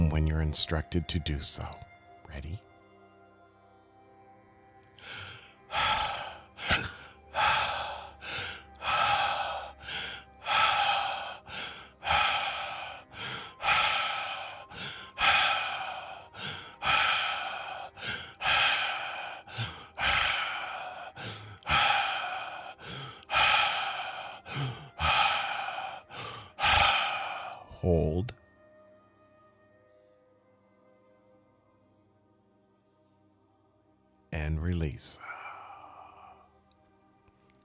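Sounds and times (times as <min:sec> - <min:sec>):
speech: 0:00.2 - 0:02.7
breathing in a guided breathing exercise: 0:04.9 - 0:27.8, 0:35.2 - 0:36.5.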